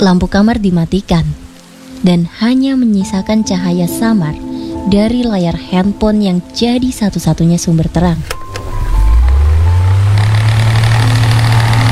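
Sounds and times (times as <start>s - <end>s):
speech: 0.0s - 1.4s, 2.0s - 8.4s
electric fan whirring and spinning: 8.4s - 11.9s.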